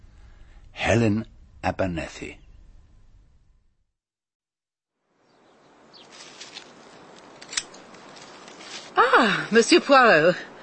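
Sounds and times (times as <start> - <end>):
speech: 0.9 - 2.4, 9.2 - 10.5
rustling while cutting late roses: 6.0 - 9.5
garden shears cutting late roses: 6.1 - 9.0.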